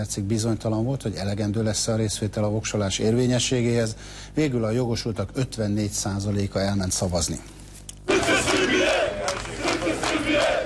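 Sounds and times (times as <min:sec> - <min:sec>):
speech: 0:00.0 - 0:07.6
crowd chanting in the streets: 0:08.1 - 0:10.6.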